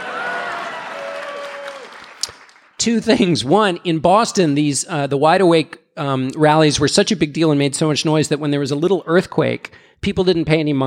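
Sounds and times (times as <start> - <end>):
audience applause: 0.0 - 2.8
speech: 2.8 - 10.8.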